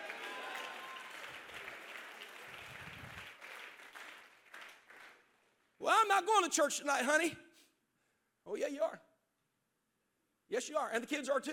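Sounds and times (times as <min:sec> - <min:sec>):
audience clapping hands: 0:00.0 - 0:05.5
speech: 0:05.8 - 0:07.4, 0:08.5 - 0:09.1, 0:10.5 - 0:11.5.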